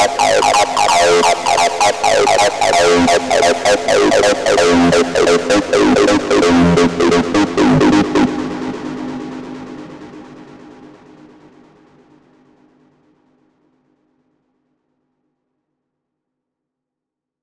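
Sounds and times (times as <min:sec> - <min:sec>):
arpeggio: 0:00.0 - 0:08.6.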